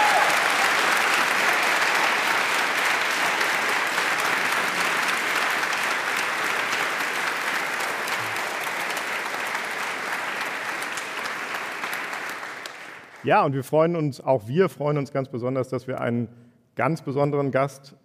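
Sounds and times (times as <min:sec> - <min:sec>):
audience applause: 0:00.0 - 0:13.4
speech: 0:13.2 - 0:18.0.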